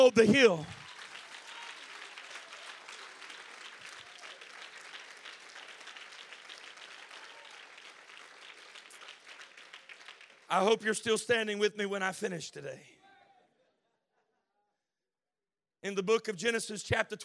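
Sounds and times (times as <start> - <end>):
speech: 0.0 - 0.8, 10.5 - 13.0, 15.8 - 17.2
audience hand clapping: 0.0 - 11.2.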